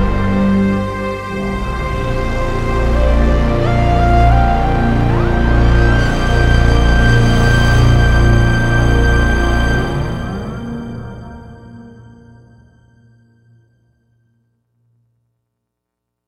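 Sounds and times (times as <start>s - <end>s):
dreamy drone: 0.0s - 12.8s.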